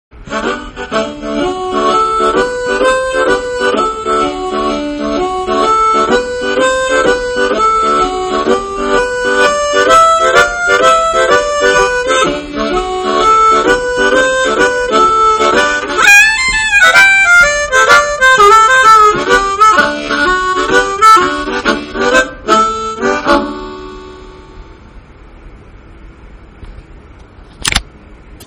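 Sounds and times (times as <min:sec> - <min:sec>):
blues music: 0:00.2 - 0:24.8.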